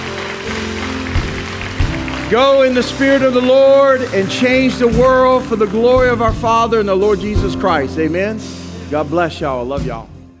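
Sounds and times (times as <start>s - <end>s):
audience hand clapping: 0.0s - 7.8s
speech: 2.3s - 10.1s.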